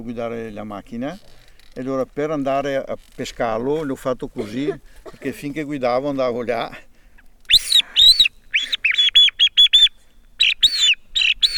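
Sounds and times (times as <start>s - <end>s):
speech: 0.0s - 6.9s
bird-call whistle imitating birdsong: 7.5s - 11.5s.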